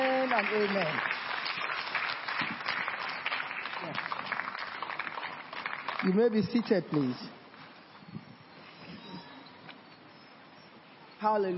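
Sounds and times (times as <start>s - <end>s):
audience clapping for choir: 0.0s - 7.2s
speech: 0.4s - 1.2s, 6.0s - 7.4s, 11.2s - 11.5s.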